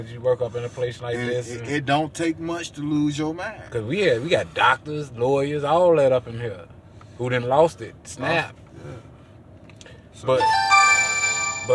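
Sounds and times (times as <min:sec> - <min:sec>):
speech: 0:00.0 - 0:09.1, 0:10.2 - 0:10.8
phone ringing: 0:10.4 - 0:11.7.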